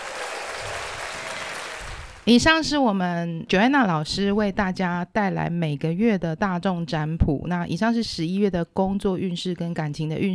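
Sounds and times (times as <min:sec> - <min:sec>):
audience applause: 0:00.0 - 0:02.3
speech: 0:02.3 - 0:10.3.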